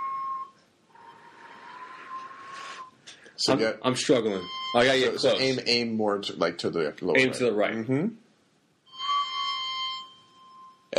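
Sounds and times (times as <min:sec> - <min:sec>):
iPhone flute app note: 0:00.0 - 0:00.6, 0:04.3 - 0:05.4, 0:08.9 - 0:10.9
breathy blowing into phone microphone: 0:00.9 - 0:03.4
speech: 0:03.4 - 0:08.2.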